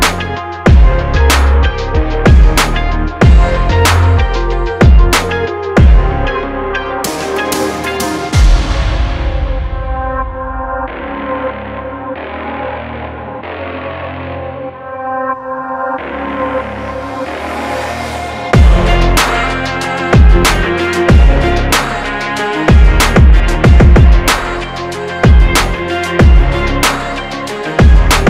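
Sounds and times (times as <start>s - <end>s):
hard motivational rock-inspired rap beat: 0.0s - 12.7s, 18.5s - 28.2s.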